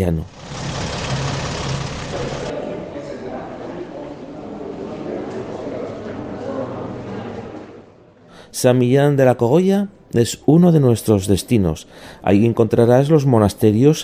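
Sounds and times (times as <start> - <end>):
speech: 0.0 - 0.4, 8.6 - 14.0
bus engine idling: 0.0 - 2.5.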